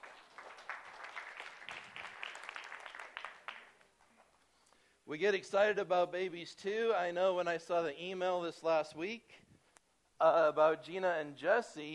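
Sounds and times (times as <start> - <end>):
audience applause: 0.0 - 4.3
speech: 5.1 - 9.4, 10.2 - 11.9.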